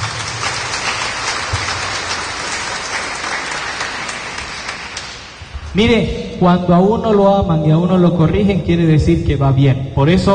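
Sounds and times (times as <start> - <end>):
audience clapping: 0.0 - 5.5
speech: 5.8 - 10.3.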